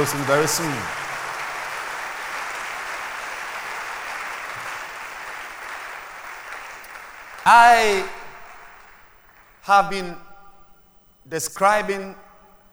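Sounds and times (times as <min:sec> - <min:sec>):
speech: 0:00.0 - 0:01.0, 0:07.4 - 0:08.2, 0:09.6 - 0:10.2, 0:11.2 - 0:12.2
hand clapping: 0:00.0 - 0:09.6.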